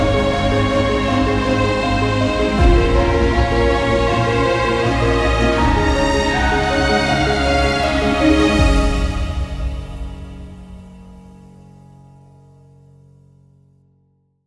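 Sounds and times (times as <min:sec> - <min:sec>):
cello: 0:00.0 - 0:11.6
piano: 0:00.0 - 0:14.3.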